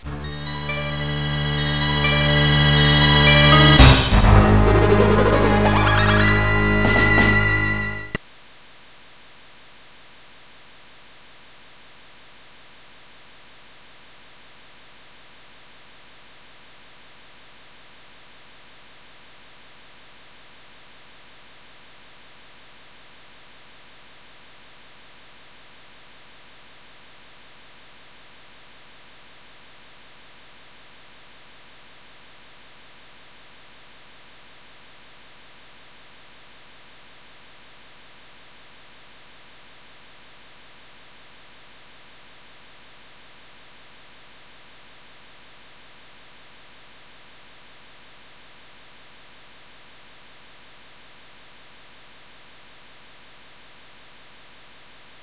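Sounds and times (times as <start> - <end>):
music: 0.0 - 8.2.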